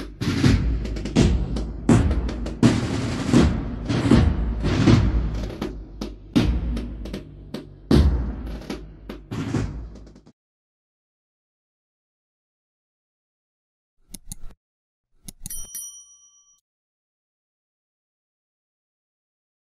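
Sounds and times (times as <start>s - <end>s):
drum: 0.0s - 10.3s.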